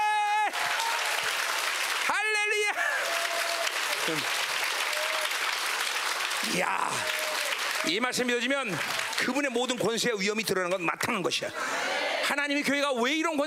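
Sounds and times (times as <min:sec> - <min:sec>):
audience clapping: 0:00.1 - 0:10.1
speech: 0:04.1 - 0:04.4, 0:06.5 - 0:07.2, 0:07.8 - 0:13.4.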